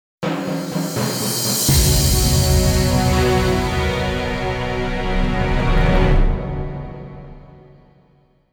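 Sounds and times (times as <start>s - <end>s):
jingle: 0.3s - 7.6s.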